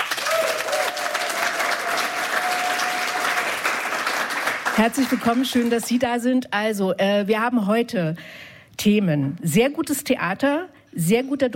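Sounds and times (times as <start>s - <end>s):
studio audience of an evening talk show applauding: 0.0s - 6.0s
speech: 4.8s - 11.5s.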